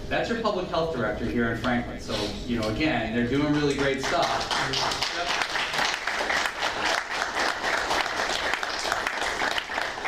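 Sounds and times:
speech: 0:00.1 - 0:05.5
audience clapping: 0:03.4 - 0:10.0.

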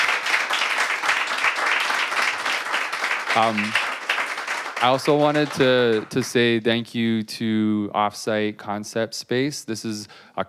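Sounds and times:
audience applause for the panel: 0:00.0 - 0:06.6
speech: 0:03.4 - 0:03.8, 0:04.8 - 0:10.4.

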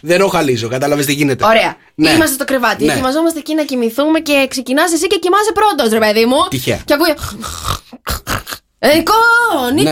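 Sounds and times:
speech: 0:00.0 - 0:09.9
person imitating snoring: 0:07.1 - 0:08.8.

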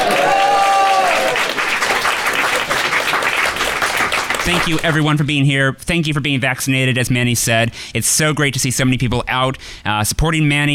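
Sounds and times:
person cheering: 0:00.0 - 0:01.6
live audience applause: 0:00.0 - 0:05.0
speech: 0:04.5 - 0:10.7.

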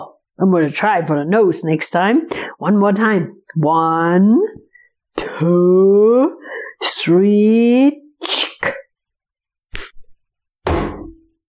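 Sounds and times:
speech: 0:00.0 - 0:04.6, 0:05.2 - 0:08.4
man slapping himself loudly: 0:10.6 - 0:11.2.

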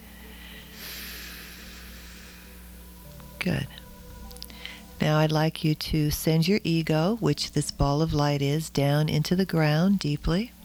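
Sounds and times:
deep breath in during a guided meditation: 0:00.0 - 0:02.8, 0:04.5 - 0:04.9
steady low hum: 0:00.0 - 0:10.6
speech: 0:03.4 - 0:03.8, 0:05.0 - 0:10.6.

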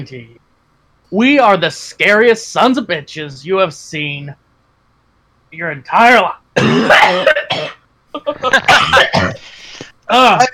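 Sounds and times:
speech: 0:00.0 - 0:00.5, 0:01.1 - 0:04.4, 0:05.5 - 0:10.5
hacking coughing fit with throat clearing: 0:06.6 - 0:09.6.

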